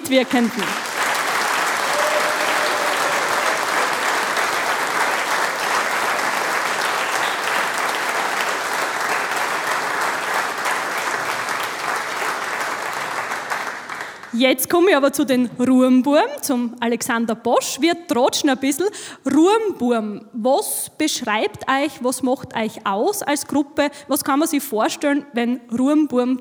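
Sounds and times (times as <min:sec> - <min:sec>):
applause: 0:00.0 - 0:14.4
speech: 0:00.1 - 0:00.8, 0:14.4 - 0:26.3.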